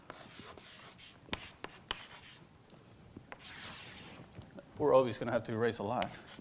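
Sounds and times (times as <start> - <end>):
writing on a board: 0.1 - 2.4, 3.3 - 4.2, 6.0 - 6.3
speech: 4.8 - 6.3.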